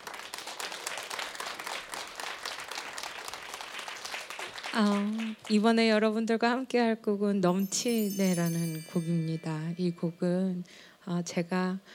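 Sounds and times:
audience applause: 0.0 - 5.5
speech: 4.7 - 11.9.

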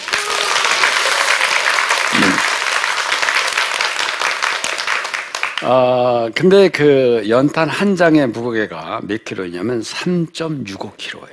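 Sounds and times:
audience applause: 0.0 - 5.9
speech: 5.6 - 11.3.

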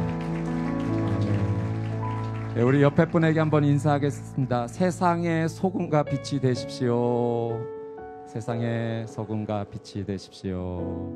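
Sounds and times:
crowd applause: 0.0 - 4.3
speech: 2.6 - 7.8, 8.4 - 11.1.

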